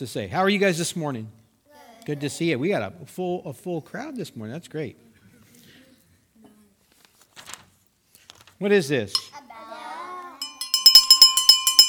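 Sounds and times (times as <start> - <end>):
speech: 0.0 - 1.4, 2.1 - 5.1, 8.6 - 9.3
small hand bell ringing: 10.4 - 11.8.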